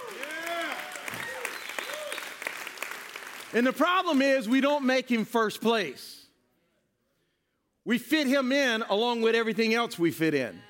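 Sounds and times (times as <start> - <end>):
audience clapping: 0.0 - 4.8
speech: 3.5 - 6.1, 7.9 - 10.6.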